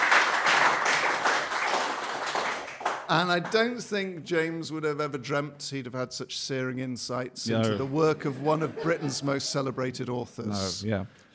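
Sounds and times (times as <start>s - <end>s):
round of applause: 0.0s - 3.7s
speech: 3.1s - 11.3s
laughter: 7.6s - 10.7s.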